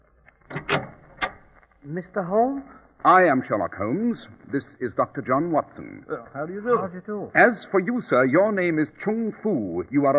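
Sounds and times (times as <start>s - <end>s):
door latch and handle clicking and clunking: 0.5s - 1.4s
speech: 1.8s - 10.1s.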